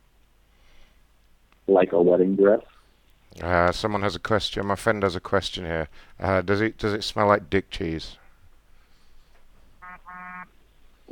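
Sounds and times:
speech: 1.7s - 2.7s, 3.4s - 8.2s
phone vibrating: 9.8s - 10.5s.

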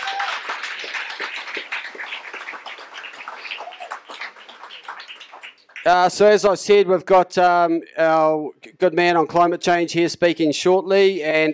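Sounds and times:
audience applause: 0.0s - 6.0s
speech: 5.8s - 11.5s.

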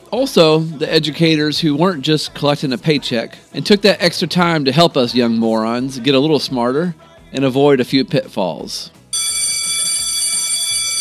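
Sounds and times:
speech: 0.1s - 9.0s
electric school bell ringing: 9.2s - 11.0s.

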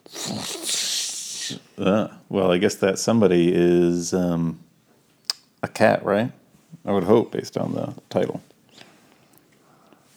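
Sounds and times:
voice imitating a toilet flushing: 0.0s - 1.7s
speech: 0.3s - 0.8s, 1.5s - 4.7s, 5.6s - 8.5s.

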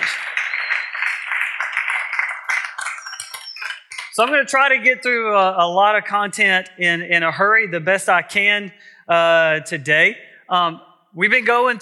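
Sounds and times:
audience applause: 0.0s - 3.9s
speech: 4.2s - 11.8s.

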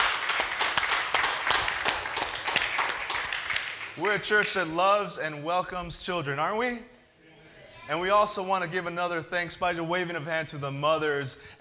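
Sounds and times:
people clapping in church: 0.0s - 4.8s
speech: 4.0s - 6.9s, 7.9s - 11.5s.

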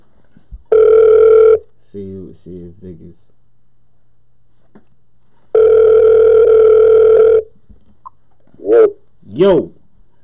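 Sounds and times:
phone ringback tone: 0.7s - 1.6s, 5.5s - 7.5s
speech: 1.9s - 3.4s, 8.8s - 9.8s.

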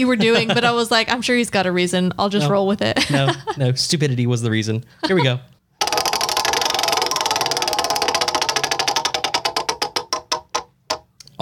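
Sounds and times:
laughter: 0.0s - 1.0s, 3.0s - 3.7s, 5.0s - 5.4s
speech: 0.0s - 5.5s
prize wheel spinning: 5.8s - 10.8s.

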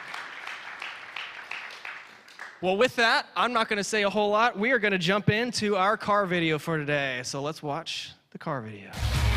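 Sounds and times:
crowd clapping: 0.0s - 2.8s
speech: 2.6s - 9.2s.

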